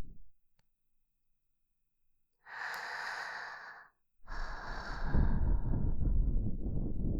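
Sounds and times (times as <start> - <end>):
ASMR breathing in the right ear: 2.5 - 7.1.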